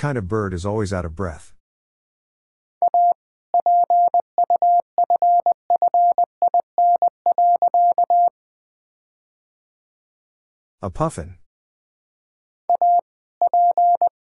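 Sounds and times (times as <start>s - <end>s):
speech: 0.0s - 1.6s, 10.8s - 11.4s
Morse code tones at 20 wpm: 2.8s - 8.3s, 12.7s - 14.2s.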